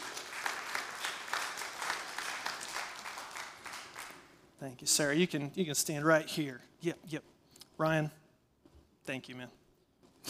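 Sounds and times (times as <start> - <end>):
audience applause: 0.0 - 4.4
speech: 4.6 - 8.2, 9.1 - 9.6.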